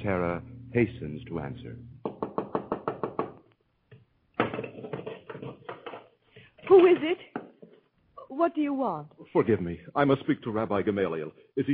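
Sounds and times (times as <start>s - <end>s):
speech: 0.0s - 2.0s, 6.7s - 7.3s, 8.4s - 11.7s
hurried knocking at a house door: 2.0s - 3.4s.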